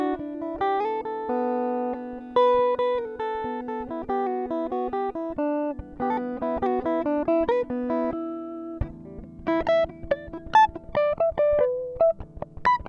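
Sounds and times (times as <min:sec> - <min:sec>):
renaissance guitar improvisation in E minor at 140 BPM: 0:00.0 - 0:12.8.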